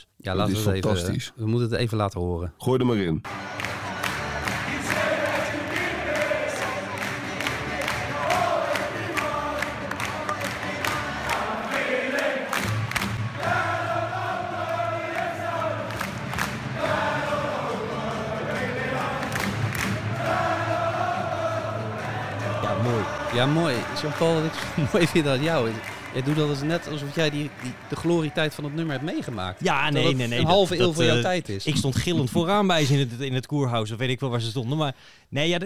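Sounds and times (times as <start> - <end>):
speech: 0.0 - 3.6, 24.0 - 35.6
stadium crowd singing along: 3.3 - 26.2
stadium crowd clapping: 3.3 - 31.2
laughter: 22.8 - 27.9, 29.0 - 33.1.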